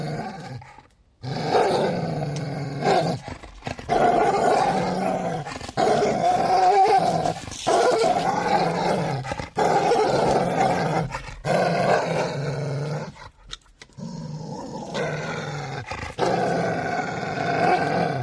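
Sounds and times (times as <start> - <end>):
large dog growling angrily: 0.0 - 13.4, 14.0 - 18.2.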